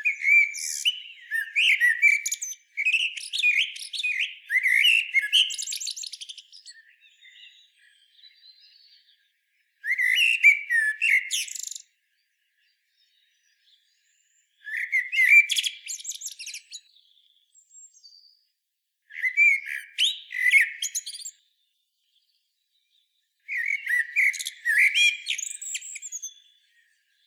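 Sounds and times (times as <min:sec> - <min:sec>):
Eurasian blackbird song: 0:00.0 - 0:27.2.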